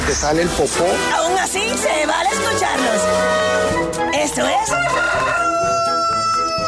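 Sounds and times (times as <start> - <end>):
speech: 0.1 - 5.8
rooster crowing: 4.6 - 6.6.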